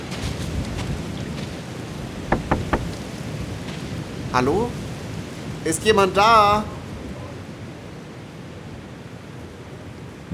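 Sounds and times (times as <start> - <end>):
rain: 0.0 - 2.4, 3.0 - 10.3
knocking on a door: 2.3 - 3.0
speech: 4.3 - 4.8, 5.6 - 6.8.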